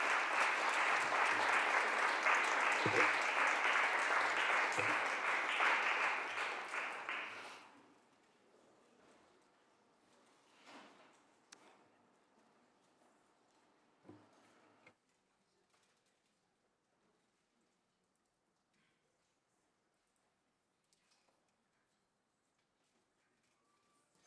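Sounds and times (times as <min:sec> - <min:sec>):
applause welcoming a former California state senator in the Senate chamber: 0:00.0 - 0:07.8.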